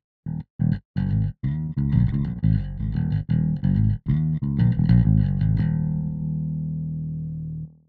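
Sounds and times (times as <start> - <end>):
bass: 0.2 - 7.8.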